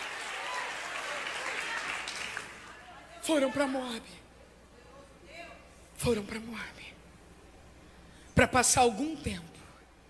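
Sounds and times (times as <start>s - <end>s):
audience applauding: 0.0s - 2.8s
speech: 3.2s - 4.2s, 6.0s - 7.0s, 8.4s - 9.5s.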